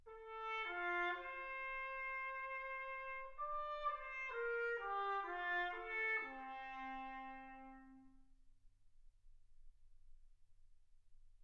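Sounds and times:
trumpet: 0.0 - 8.3.

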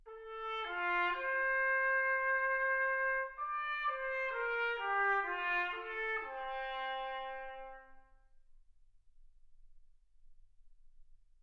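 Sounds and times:
trumpet: 0.0 - 8.3.

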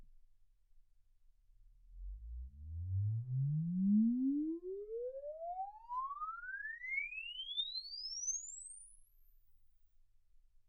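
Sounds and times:
exponential sine sweep from 10 Hz to 24 kHz: 2.9 - 9.4.

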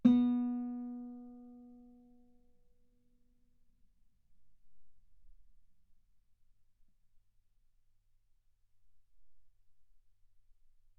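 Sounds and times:
guitar note B3: 0.0 - 1.9.

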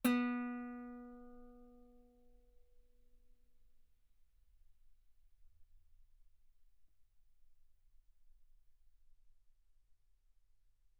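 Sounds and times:
guitar note B3: 0.1 - 1.6.

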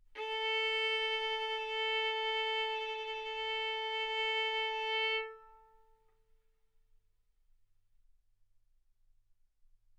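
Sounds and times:
violin arco on A string: 0.1 - 6.0.

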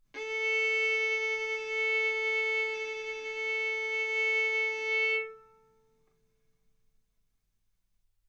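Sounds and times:
violin bowed mezzo-forte on the A string, A4 and B4: 0.2 - 5.9.

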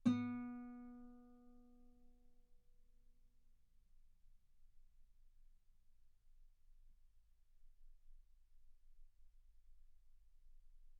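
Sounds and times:
guitar note B3: 0.0 - 1.0.

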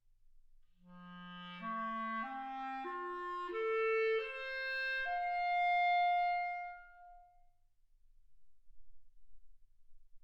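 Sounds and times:
clarinet: 0.9 - 7.5.

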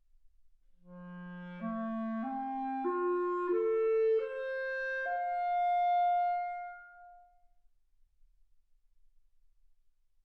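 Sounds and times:
clarinet: 0.9 - 7.4.

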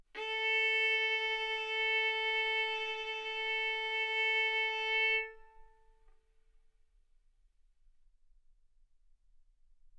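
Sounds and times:
violin arco on A string: 0.2 - 6.0.

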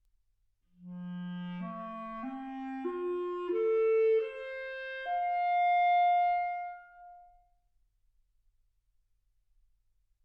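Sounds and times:
clarinet: 0.8 - 7.5.

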